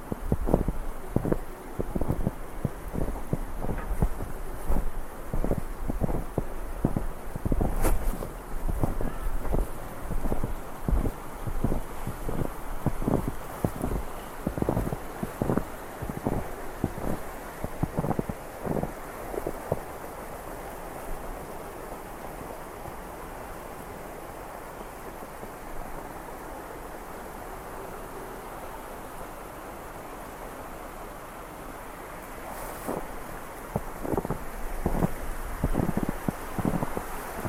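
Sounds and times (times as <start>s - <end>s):
footsteps crunching through snow: 0.0s - 19.8s, 32.5s - 37.4s
river water rushing: 0.0s - 37.4s
wind: 0.0s - 37.4s.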